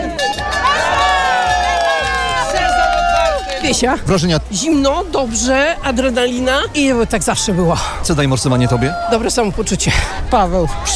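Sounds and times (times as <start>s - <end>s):
crowd shouting as winter swimmers plunge into icy water: 0.0s - 4.5s, 6.6s - 10.9s
speech: 3.7s - 10.9s.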